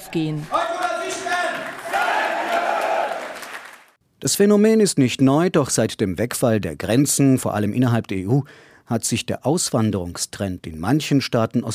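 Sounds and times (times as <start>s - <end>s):
large rally crowd cheering and shouting: 0.0s - 3.5s
speech: 0.1s - 0.6s, 4.2s - 11.7s.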